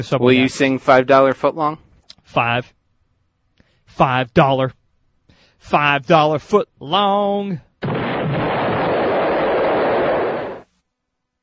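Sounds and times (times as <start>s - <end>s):
speech: 0.0s - 2.8s, 3.9s - 4.8s, 5.6s - 7.7s
explosion sound effect: 7.8s - 10.7s.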